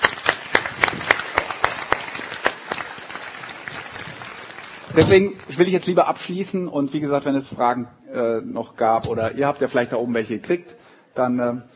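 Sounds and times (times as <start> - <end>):
audience applause: 0.0 - 5.8
speech: 5.0 - 11.7.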